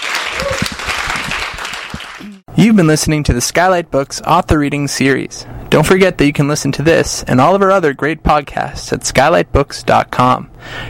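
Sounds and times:
audience round of applause: 0:00.0 - 0:02.4
speech: 0:02.3 - 0:10.8.

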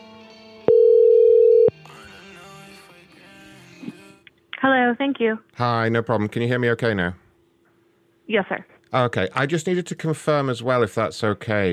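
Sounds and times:
telephone dial tone while calling back: 0:00.7 - 0:01.7
speech: 0:04.9 - 0:07.2, 0:08.3 - 0:11.7.

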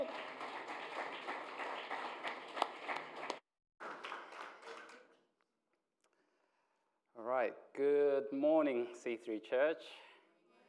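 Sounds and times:
audience applause: 0:00.0 - 0:05.0
speech: 0:07.4 - 0:10.0.

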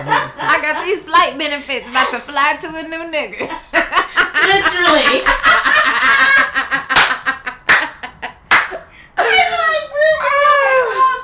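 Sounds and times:
laughter: 0:00.0 - 0:11.2
speech: 0:00.7 - 0:03.7, 0:04.4 - 0:06.2
person clapping: 0:06.8 - 0:08.9.

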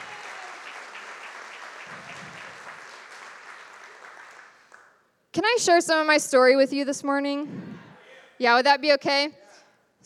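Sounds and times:
crowd applauding: 0:00.0 - 0:05.1
speech: 0:05.4 - 0:07.8, 0:08.4 - 0:09.4.

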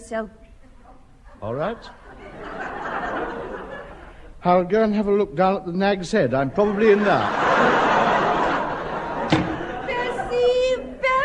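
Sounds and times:
speech: 0:00.1 - 0:00.5, 0:01.4 - 0:02.0, 0:04.4 - 0:08.0
audience laughter and chatter: 0:01.3 - 0:04.4, 0:06.4 - 0:11.2
door slamming shut: 0:09.2 - 0:09.8.

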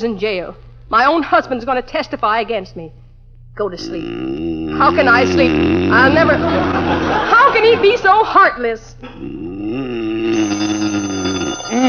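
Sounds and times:
speech: 0:00.0 - 0:03.0, 0:03.6 - 0:10.7
laughter: 0:06.0 - 0:08.4
telephone ringing: 0:10.4 - 0:11.8.

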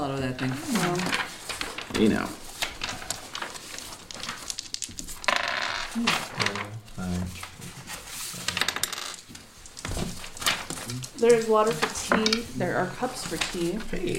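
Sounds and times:
speech: 0:00.0 - 0:01.3, 0:02.0 - 0:02.4, 0:11.2 - 0:14.1
dice clattering across a hard surface: 0:00.7 - 0:06.6, 0:08.4 - 0:12.5.

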